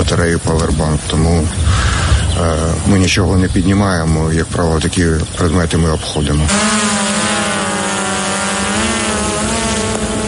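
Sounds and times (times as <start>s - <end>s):
speech: 0.0s - 6.8s
small reconnaissance drone motors buzzing during launch: 6.5s - 10.2s.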